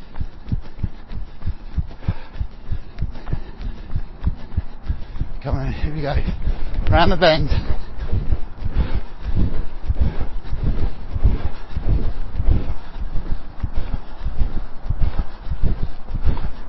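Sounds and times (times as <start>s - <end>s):
wind buffeting the microphone on a grass track in spring: 0.0s - 16.6s
speech: 5.4s - 7.8s.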